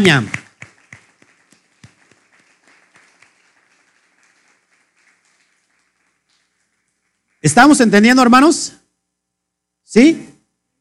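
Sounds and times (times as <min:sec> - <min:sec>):
speech: 0:00.0 - 0:00.4, 0:07.4 - 0:08.8, 0:09.9 - 0:10.3
audience applause: 0:00.0 - 0:07.5.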